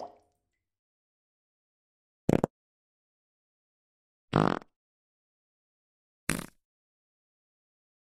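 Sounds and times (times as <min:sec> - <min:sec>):
farts: 0:02.3 - 0:02.5, 0:04.3 - 0:04.7, 0:06.3 - 0:06.6.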